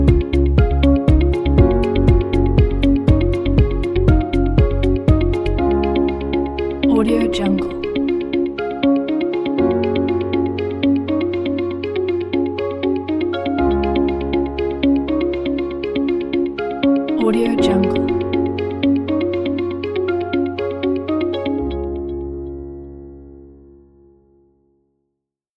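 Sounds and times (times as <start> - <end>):
corporate background music: 0.0 - 23.9.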